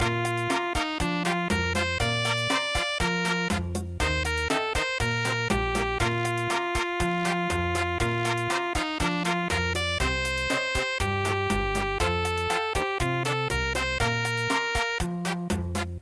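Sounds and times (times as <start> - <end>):
midi cha-cha-cha music: 0.0 - 16.0.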